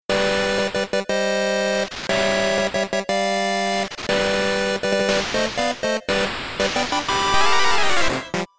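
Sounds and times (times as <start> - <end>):
silly march melody: 0.1 - 8.4.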